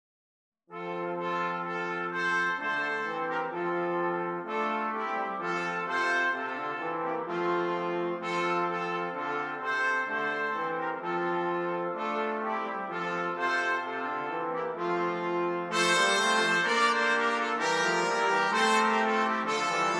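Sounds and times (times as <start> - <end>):
brass instruments: 0.7 - 19.9.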